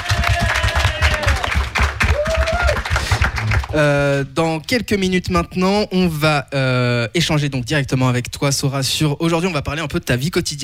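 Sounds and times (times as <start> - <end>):
audience applause: 0.0 - 4.1
speech: 3.7 - 10.6.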